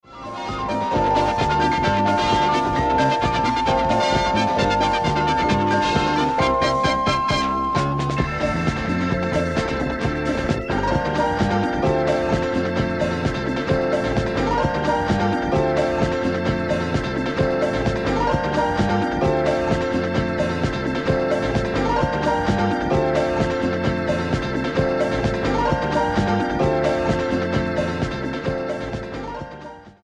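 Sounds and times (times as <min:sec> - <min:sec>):
disco music: 0:00.0 - 0:30.0.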